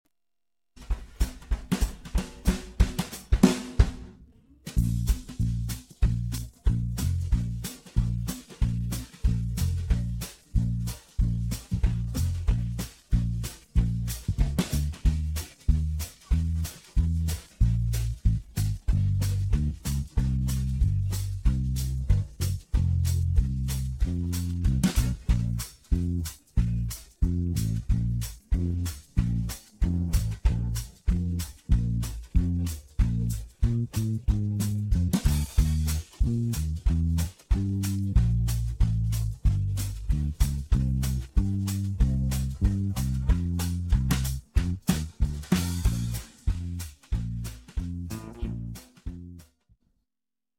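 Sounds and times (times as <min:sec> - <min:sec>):
western swing solo: 0:00.8 - 0:49.5.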